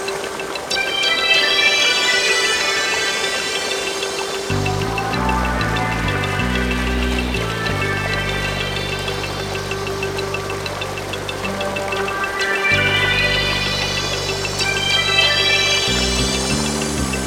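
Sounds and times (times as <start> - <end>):
background music: 0.0 - 17.2
water noise: 0.0 - 17.2.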